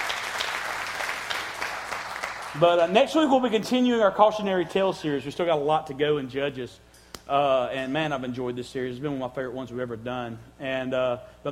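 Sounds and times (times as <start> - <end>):
crowd applauding: 0.0 - 5.0
speech: 2.6 - 11.5.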